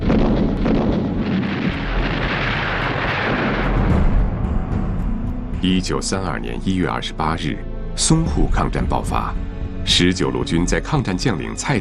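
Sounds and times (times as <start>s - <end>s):
crackling gunfire: 0.0s - 4.6s
artillery explosions: 0.0s - 5.6s
speech: 5.6s - 11.8s.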